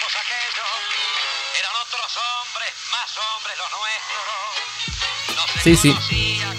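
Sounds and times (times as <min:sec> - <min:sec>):
speech: 0:00.2 - 0:06.4
tango music recording playing: 0:05.6 - 0:06.5.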